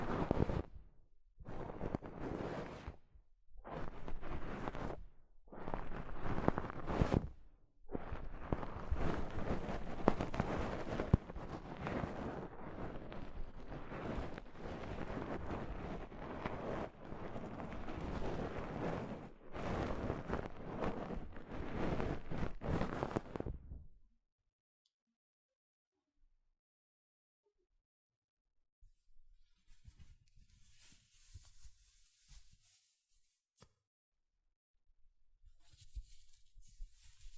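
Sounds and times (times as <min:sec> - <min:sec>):
soft fabric brushing against a microphone: 0:00.0 - 0:23.9, 0:29.5 - 0:33.4, 0:35.5 - 0:37.3.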